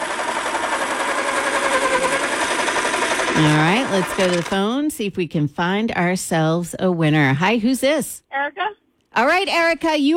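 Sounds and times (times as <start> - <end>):
electric pencil sharpener grinding: 0.0 - 4.8
speech: 3.4 - 10.1.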